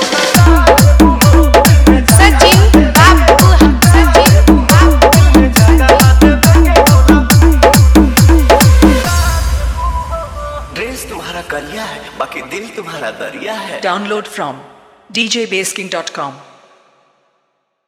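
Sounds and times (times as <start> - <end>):
hard vibration mix: 0.0 - 9.6.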